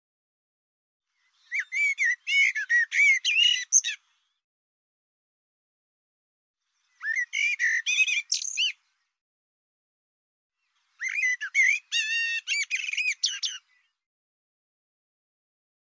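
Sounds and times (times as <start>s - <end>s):
bird song: 1.1s - 4.4s, 6.6s - 9.2s, 10.6s - 14.0s.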